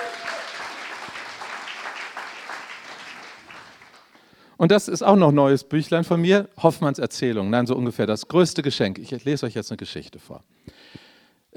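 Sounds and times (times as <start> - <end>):
audience applause: 0.0 - 4.2
speech: 4.6 - 11.0.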